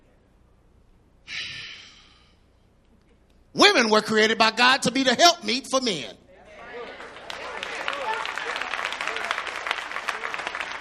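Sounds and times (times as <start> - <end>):
speech: 3.6 - 6.2
audience clapping: 6.8 - 10.8.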